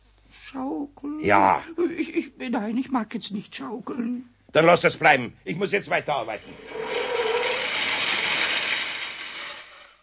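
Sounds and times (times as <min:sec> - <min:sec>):
speech: 0:00.5 - 0:07.0
electric saw being switched on: 0:06.4 - 0:10.0.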